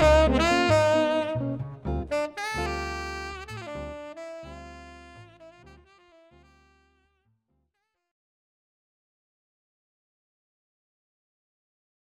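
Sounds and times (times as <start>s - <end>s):
jazz ensemble playing: 0.0s - 6.3s.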